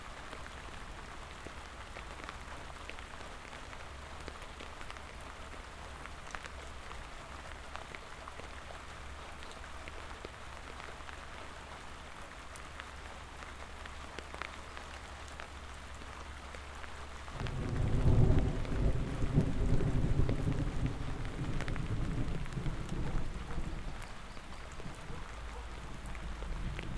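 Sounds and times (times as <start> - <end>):
thunderstorm: 17.4 - 24.1, 26.3 - 26.9.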